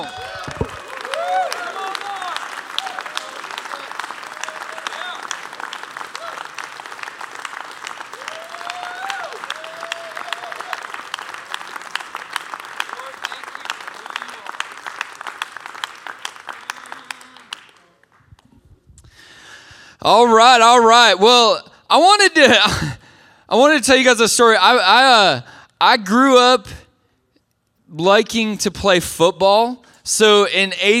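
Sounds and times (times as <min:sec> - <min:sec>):
audience clapping: 0:00.0 - 0:18.5
laughter: 0:01.5 - 0:02.4
speech: 0:20.0 - 0:26.8, 0:28.0 - 0:30.9.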